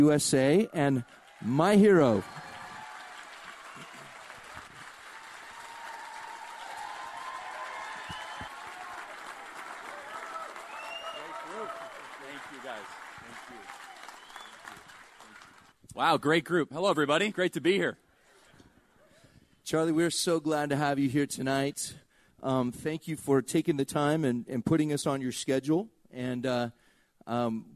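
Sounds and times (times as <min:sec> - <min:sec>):
speech: 0:00.0 - 0:02.4, 0:16.0 - 0:18.0, 0:19.7 - 0:27.7
audience applause welcoming a speaker to the stage: 0:00.9 - 0:15.8.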